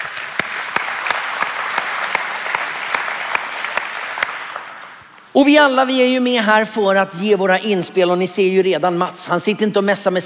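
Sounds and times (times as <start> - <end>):
audience applause: 0.0 - 5.1
speech: 5.4 - 10.2.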